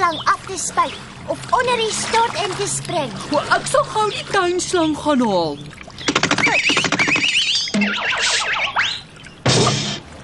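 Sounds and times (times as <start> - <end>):
speech: 0.1 - 7.0, 7.8 - 8.6
cartoonish springy boing-like tones of a slip: 6.0 - 10.1.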